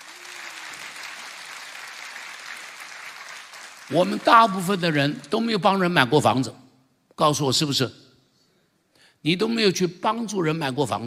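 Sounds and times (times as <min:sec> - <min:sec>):
audience applause: 0:00.0 - 0:04.7
speech: 0:03.9 - 0:06.6, 0:07.2 - 0:08.0, 0:09.2 - 0:11.0.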